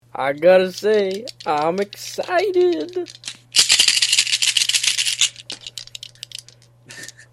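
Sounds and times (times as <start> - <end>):
speech: 0.2 - 3.3
polyhedral dice rattling: 0.8 - 6.6.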